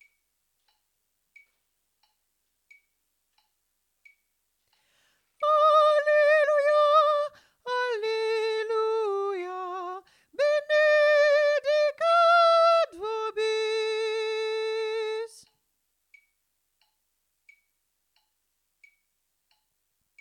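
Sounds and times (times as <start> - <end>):
tenor singing: 5.4 - 15.5.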